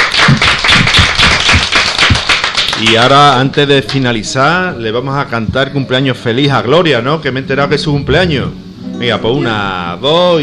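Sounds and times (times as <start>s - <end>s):
applause: 0.0s - 4.0s
speech: 2.8s - 10.4s.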